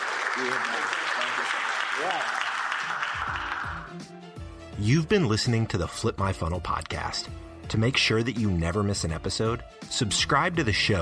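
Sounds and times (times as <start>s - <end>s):
audience applause: 0.0s - 4.1s
speech: 0.4s - 3.4s, 4.8s - 11.0s.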